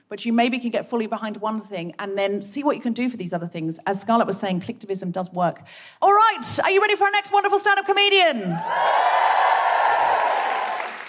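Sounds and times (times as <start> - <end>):
speech: 0.1 - 9.4
audience applause and cheering: 8.6 - 11.0.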